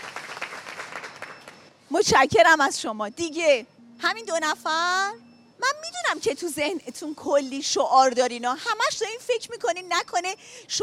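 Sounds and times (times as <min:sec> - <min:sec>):
audience applause: 0:00.0 - 0:01.4
speech: 0:02.0 - 0:10.8.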